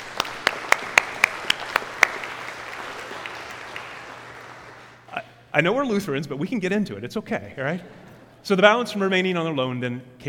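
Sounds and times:
audience clapping: 0.0 - 5.1
speech: 5.6 - 10.2.

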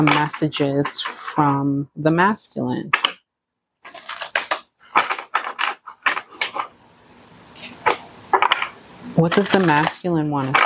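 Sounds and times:
speech: 0.0 - 3.0, 9.2 - 10.6
cards pulled from a deck: 3.9 - 6.6.

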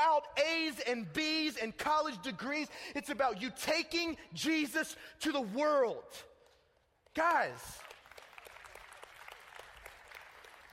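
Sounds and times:
speech: 0.0 - 6.3, 7.2 - 7.9
audience clapping during a faith talk to young people: 7.0 - 10.7.

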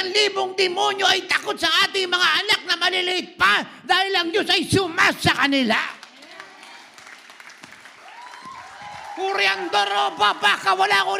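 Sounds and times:
speech: 0.1 - 6.0, 9.2 - 11.1
audience clapping: 5.9 - 11.1.

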